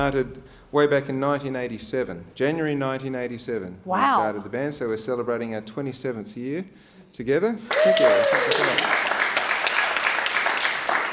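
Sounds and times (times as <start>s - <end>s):
speech: 0.0s - 9.1s
audience applause: 7.7s - 11.1s.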